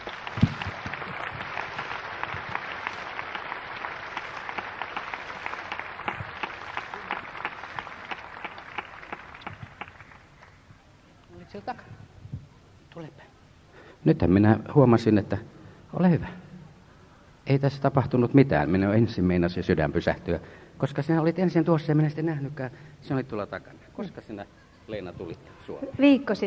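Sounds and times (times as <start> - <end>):
crowd applauding: 0.0 - 10.7
speech: 11.6 - 11.9, 14.0 - 16.4, 17.5 - 26.4.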